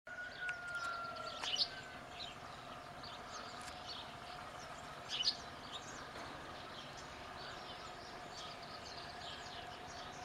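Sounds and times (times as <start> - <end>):
European goldfinch Carduelis carduelis twittering chirps: 0.4 - 10.2.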